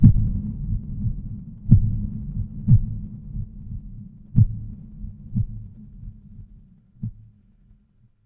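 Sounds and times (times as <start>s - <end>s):
horror heartbeat: 0.0s - 7.8s.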